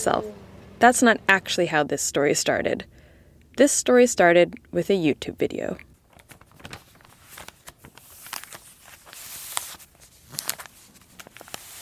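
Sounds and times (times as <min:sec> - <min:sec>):
speech: 0:00.0 - 0:03.0, 0:03.6 - 0:05.9
book pages turning: 0:06.1 - 0:11.8.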